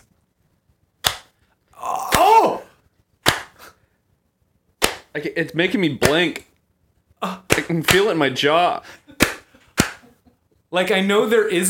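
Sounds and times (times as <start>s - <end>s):
loud hand clap: 3.2s - 3.6s, 4.8s - 5.1s, 9.2s - 10.0s
speech: 5.2s - 6.5s, 7.2s - 9.0s, 10.7s - 11.6s.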